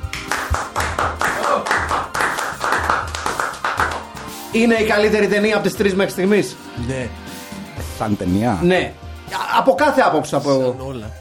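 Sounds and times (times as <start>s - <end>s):
applause: 0.0s - 4.2s
speech: 4.5s - 7.2s, 8.0s - 11.1s.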